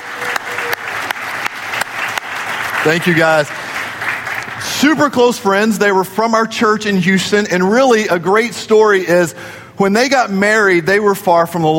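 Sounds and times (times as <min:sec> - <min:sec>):
church audience clapping to welcome friends: 0:00.0 - 0:05.9
speech: 0:02.8 - 0:03.6, 0:04.7 - 0:11.7.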